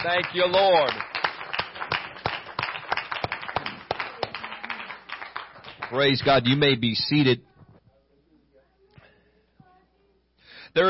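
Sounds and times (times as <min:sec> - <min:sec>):
speech: 0:00.0 - 0:01.1, 0:05.9 - 0:07.5
audience clapping hands: 0:00.0 - 0:06.8.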